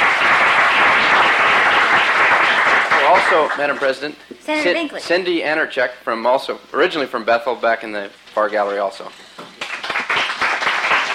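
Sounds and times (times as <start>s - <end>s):
applause welcoming guests in the Senate gallery: 0.0s - 4.0s, 9.6s - 11.1s
speech: 3.2s - 9.2s.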